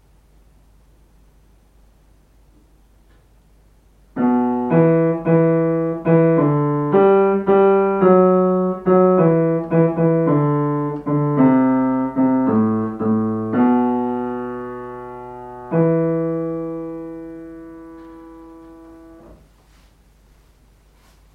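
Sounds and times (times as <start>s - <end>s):
piano: 4.1s - 19.5s.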